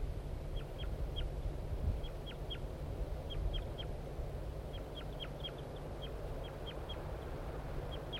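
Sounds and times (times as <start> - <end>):
low noise: 0.0 - 8.1
male bird flight calls from a tree near the nest: 0.5 - 1.3, 2.0 - 4.0, 4.7 - 8.1.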